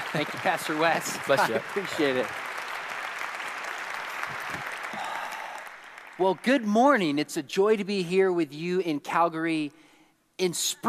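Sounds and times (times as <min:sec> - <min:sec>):
church audience applause welcoming a speaker: 0:00.0 - 0:07.0
speech: 0:00.1 - 0:02.5, 0:06.2 - 0:09.8, 0:10.4 - 0:10.8.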